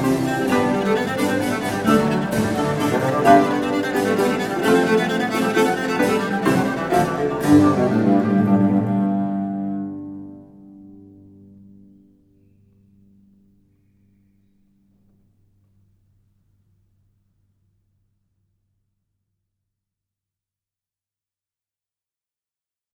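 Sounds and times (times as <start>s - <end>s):
Passamezzo moderno baroque improvisation: 0.0s - 12.1s.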